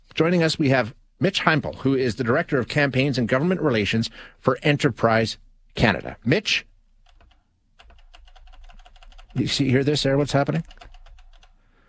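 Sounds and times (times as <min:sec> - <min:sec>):
speech: 0:00.2 - 0:06.7, 0:09.4 - 0:10.9
rapid tapping on phone buttons: 0:07.1 - 0:09.5.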